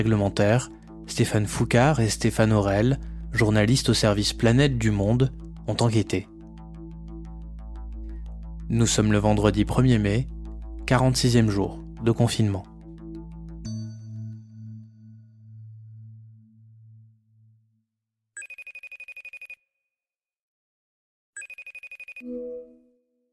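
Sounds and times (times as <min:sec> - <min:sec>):
speech: 0:00.0 - 0:06.3, 0:08.7 - 0:12.7
low musical tone: 0:00.0 - 0:17.8, 0:22.2 - 0:23.3
electronic telephone ringing: 0:18.4 - 0:19.6, 0:21.4 - 0:22.8.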